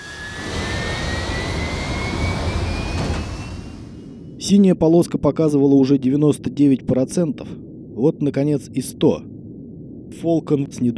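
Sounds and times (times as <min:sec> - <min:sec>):
jet airplane engine accelerating: 0:00.0 - 0:04.4
speech: 0:04.5 - 0:09.3, 0:10.1 - 0:10.9.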